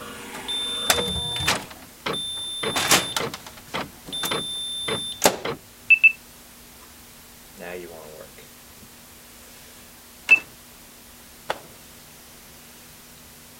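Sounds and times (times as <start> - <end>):
high electronic tone: 0.0 - 3.4
fax machine clattering and whirring: 0.0 - 5.6
sharp beeps: 0.5 - 3.4, 4.1 - 6.2.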